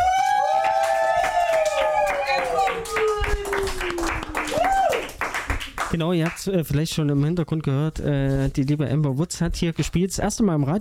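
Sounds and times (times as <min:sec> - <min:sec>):
audience clapping: 0:00.0 - 0:06.8
speech: 0:05.9 - 0:10.7.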